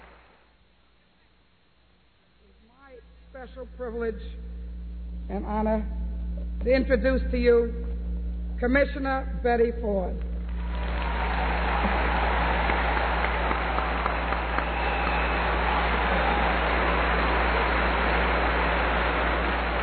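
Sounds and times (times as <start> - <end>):
low steady hum: 0.0 - 19.8
speech: 3.4 - 4.6, 5.3 - 6.0, 6.6 - 7.8, 8.6 - 10.3
audience applause: 10.5 - 19.8.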